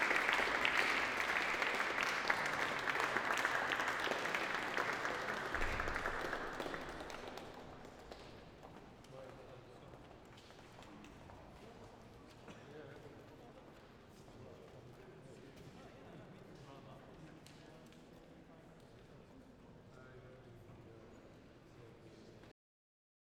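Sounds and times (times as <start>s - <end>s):
applause: 0.0s - 9.8s.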